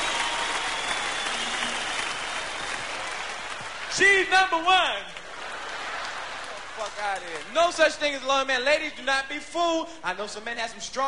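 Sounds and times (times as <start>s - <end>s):
audience applause and clapping: 0.0s - 7.6s
speech: 4.0s - 5.2s, 6.8s - 11.0s.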